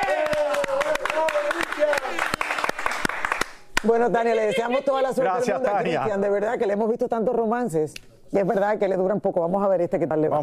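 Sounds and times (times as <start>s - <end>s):
applause: 0.0s - 4.0s
speech: 3.8s - 10.4s.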